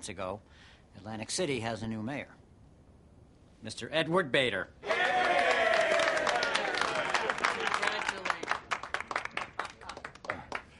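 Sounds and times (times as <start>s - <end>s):
speech: 0.0s - 2.4s, 3.6s - 5.4s
audience applause: 4.8s - 10.7s.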